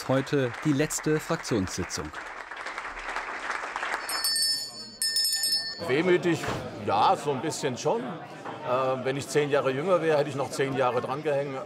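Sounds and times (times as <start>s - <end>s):
speech: 0.0s - 2.4s, 5.8s - 11.6s
applause: 0.0s - 5.0s.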